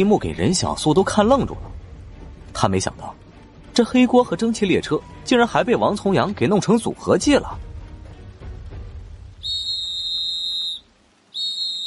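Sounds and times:
speech: 0.0s - 1.8s, 2.6s - 3.2s, 3.8s - 7.6s
shrill police alarm whistles in a town: 9.4s - 11.8s.

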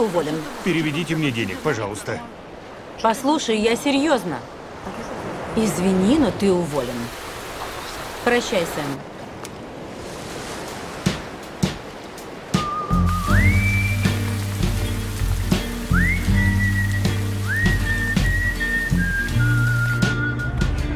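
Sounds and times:
speech: 0.0s - 2.4s, 3.0s - 7.2s, 8.2s - 9.1s
steady rain falling: 0.0s - 3.8s, 4.5s - 20.4s
whistled melody of rising, sliding notes: 12.5s - 15.0s, 15.8s - 20.9s.

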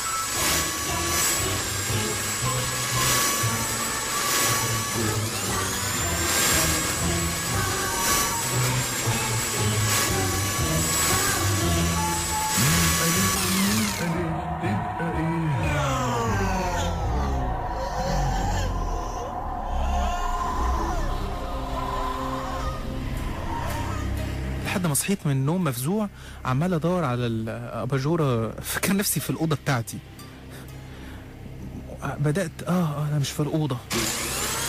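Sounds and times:
electric blender running: 0.0s - 24.6s, 33.9s - 34.6s
speech: 25.0s - 30.1s, 32.2s - 34.4s.

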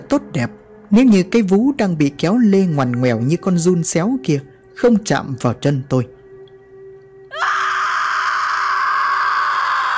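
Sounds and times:
speech: 0.1s - 6.2s
woman screaming: 7.3s - 9.9s.

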